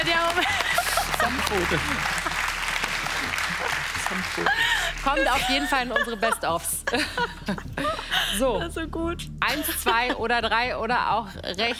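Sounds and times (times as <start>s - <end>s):
audience applause: 0.0s - 5.7s
laughter: 0.0s - 8.5s
speech: 1.5s - 2.3s, 4.1s - 11.7s.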